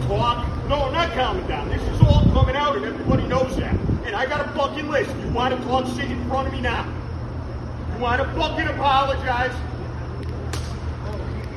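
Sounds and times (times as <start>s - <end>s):
speech: 0.1s - 7.0s, 8.0s - 9.7s
a hard slap on someone: 10.5s - 10.9s.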